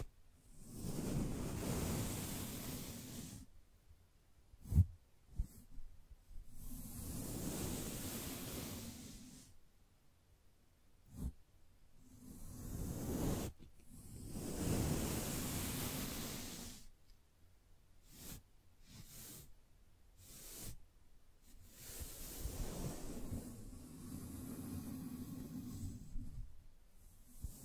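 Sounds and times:
gentle brushing strokes: 0.0s - 3.7s, 4.5s - 9.7s, 10.9s - 17.2s, 18.0s - 27.6s.

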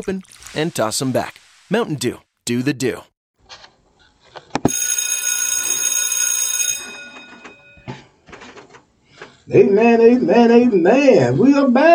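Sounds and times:
speech: 0.0s - 3.6s, 9.5s - 11.9s
bell ringing: 4.7s - 8.1s.

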